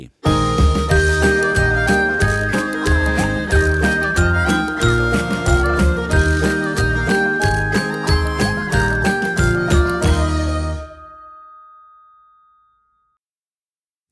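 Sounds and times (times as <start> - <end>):
duet: 0.3 - 11.0.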